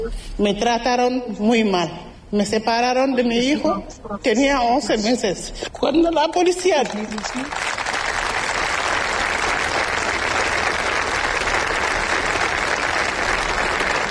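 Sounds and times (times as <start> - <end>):
speech: 0.0 - 7.8
audience applauding: 6.4 - 14.0.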